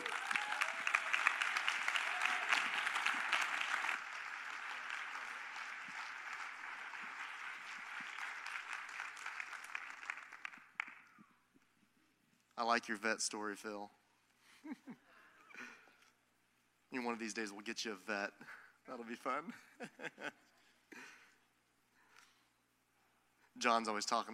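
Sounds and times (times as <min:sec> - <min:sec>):
church congregation applauding to welcome the associate pastor: 0:00.0 - 0:11.1
speech: 0:12.6 - 0:14.0, 0:17.0 - 0:20.4, 0:23.6 - 0:24.3.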